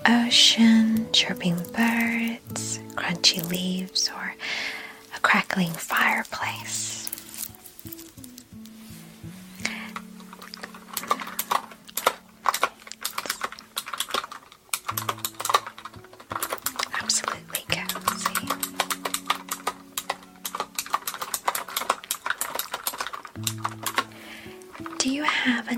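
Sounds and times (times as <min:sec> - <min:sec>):
typing on a clicky mechanical computer keyboard: 0:00.0 - 0:08.2, 0:09.7 - 0:25.6
speech: 0:00.1 - 0:07.0.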